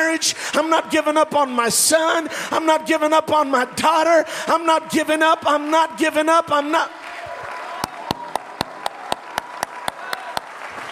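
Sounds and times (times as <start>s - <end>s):
speech: 0.2s - 7.0s
crowd noise and cheering: 5.3s - 10.8s
audience clapping in steady unison: 5.4s - 10.8s.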